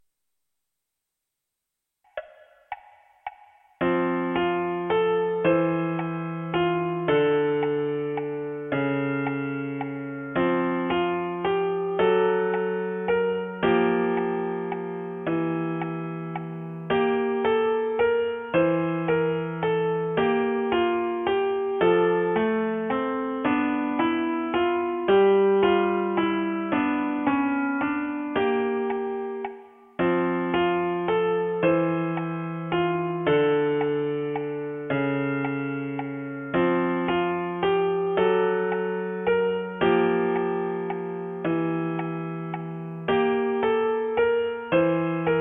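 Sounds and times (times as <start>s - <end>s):
piano: 2.1s - 45.3s.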